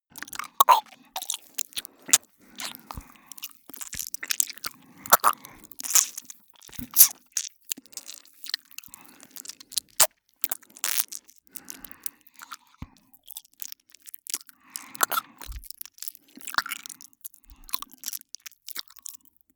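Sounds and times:
lip smacking: 0:00.2 - 0:12.6, 0:14.8 - 0:15.7.

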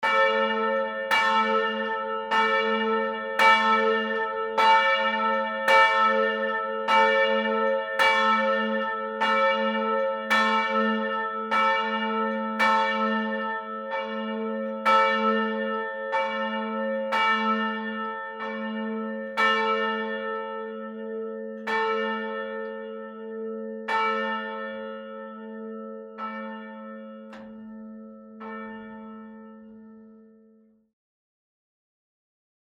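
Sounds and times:
medium-pitch church bell: 0:00.0 - 0:30.9.

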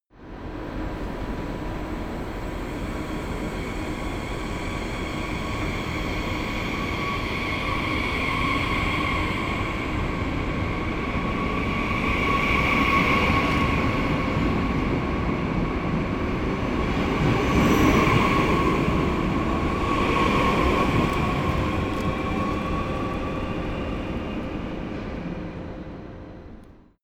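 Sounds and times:
regional train departing: 0:00.4 - 0:26.9.

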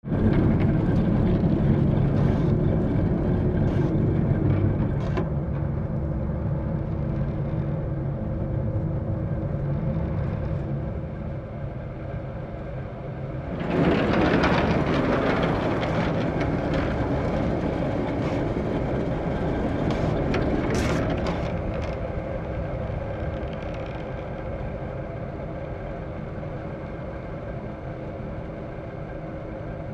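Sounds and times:
cable car ride: 0:00.0 - 0:29.9.

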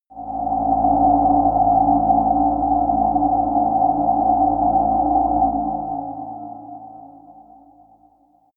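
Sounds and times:
sci-fi drones: 0:00.1 - 0:08.0.

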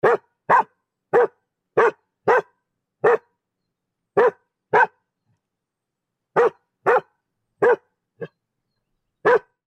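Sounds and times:
dog barking: 0:00.0 - 0:03.3, 0:04.2 - 0:05.0, 0:06.4 - 0:08.4, 0:09.2 - 0:09.6.

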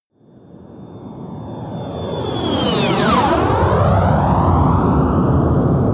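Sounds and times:
military jet bomber flyby whoosh: 0:01.2 - 0:05.8.

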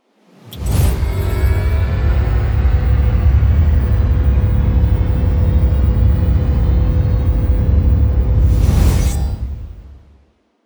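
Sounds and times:
promo synth pad: 0:00.5 - 0:08.9.

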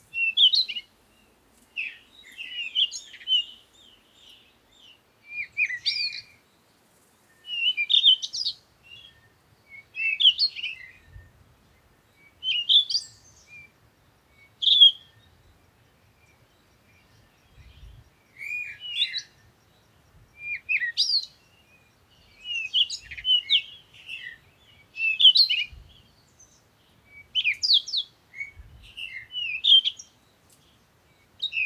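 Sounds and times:
African bush morning birds: 0:00.0 - 0:31.6.

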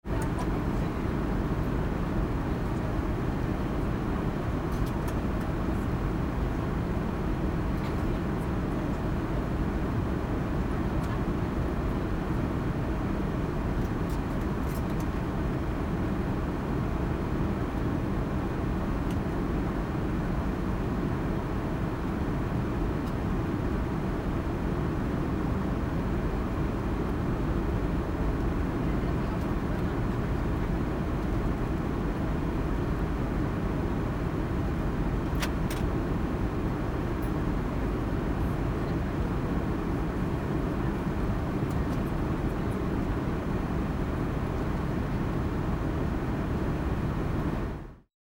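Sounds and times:
airplane cabin interior ambience: 0:00.0 - 0:48.0.

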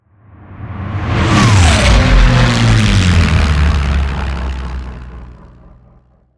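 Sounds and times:
flyby: 0:00.4 - 0:06.2.

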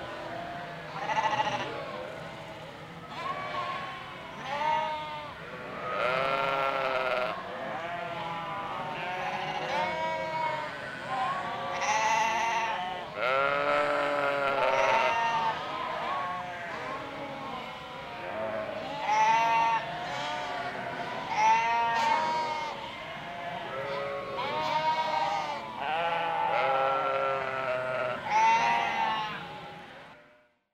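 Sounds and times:
flock of sheep bleating: 0:00.0 - 0:30.6.

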